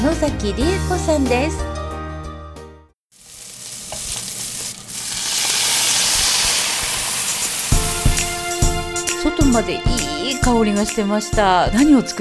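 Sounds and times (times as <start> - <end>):
speech: 0.1 - 1.7, 9.4 - 12.1
coffee-flavoured beef stroganoff-style curry sizzling in a pan: 3.2 - 9.0.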